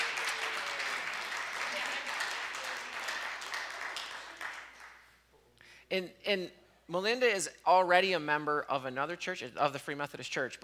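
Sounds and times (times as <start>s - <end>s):
audience applause: 0.0s - 5.1s
speech: 5.9s - 10.6s.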